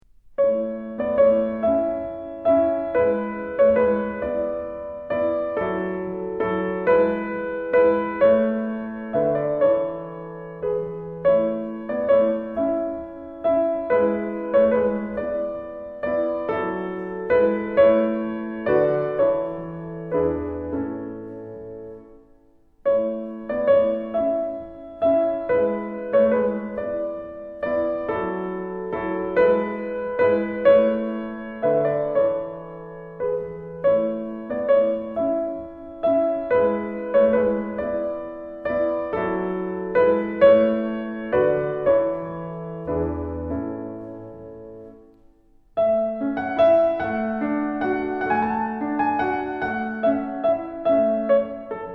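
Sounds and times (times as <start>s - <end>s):
piano sonata: 0.0s - 51.9s.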